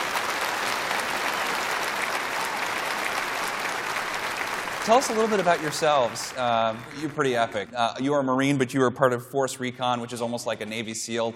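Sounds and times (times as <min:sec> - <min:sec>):
audience applause welcoming guests on stage at a ministry program for returning war veterans: 0:00.0 - 0:07.8
speech: 0:04.8 - 0:11.3.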